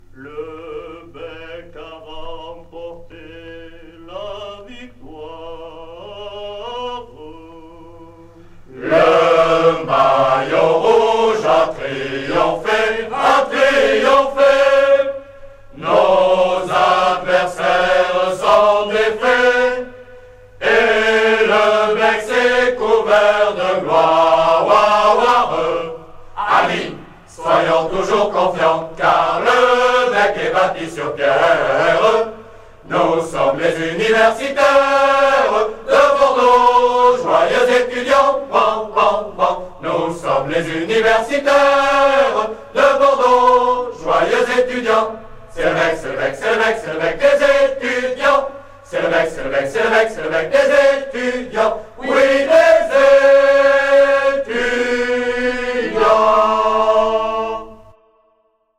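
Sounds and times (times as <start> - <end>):
group singing: 0.1 - 58.0.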